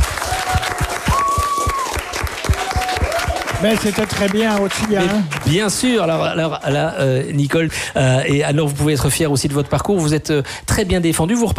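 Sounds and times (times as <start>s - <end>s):
audience applause: 0.0s - 6.2s
speech: 3.6s - 11.5s.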